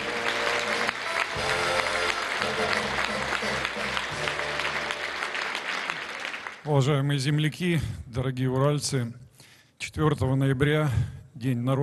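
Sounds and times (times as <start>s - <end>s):
audience applause: 0.0s - 6.7s
speech: 6.7s - 9.2s, 9.8s - 11.8s.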